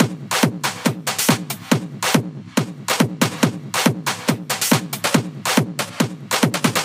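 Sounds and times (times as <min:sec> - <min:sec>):
music loop at 140 BPM: 0:00.0 - 0:06.8.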